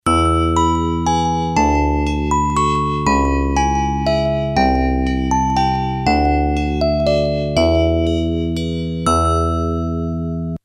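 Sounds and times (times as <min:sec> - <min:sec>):
game over jingle: 0:00.1 - 0:10.6.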